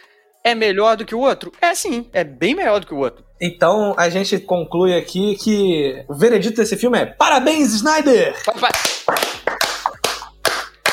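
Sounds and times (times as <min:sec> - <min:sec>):
speech: 0:00.4 - 0:08.9
clapping: 0:08.4 - 0:10.9.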